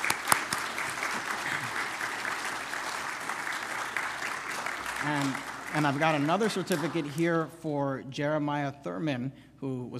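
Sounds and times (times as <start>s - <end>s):
round of applause: 0.0s - 7.5s
speech: 5.0s - 9.9s.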